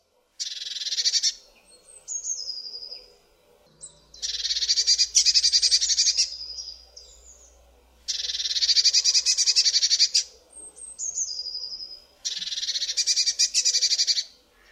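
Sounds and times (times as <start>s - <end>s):
Eurasian blue tit singing: 0.0s - 14.6s.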